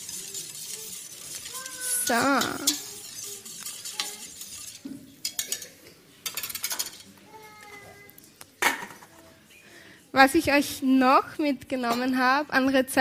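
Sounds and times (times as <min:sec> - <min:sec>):
spoon stirring salted water in a metal cooking pot: 0:00.0 - 0:07.1
speech: 0:02.1 - 0:02.8, 0:10.2 - 0:12.9.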